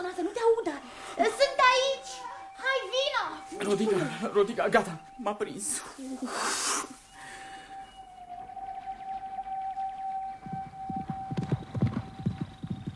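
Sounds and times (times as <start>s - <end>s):
sustained high whistling tone: 0.7s - 12.9s
speech: 3.7s - 7.0s
horse hooves clip-clopping: 10.4s - 12.9s.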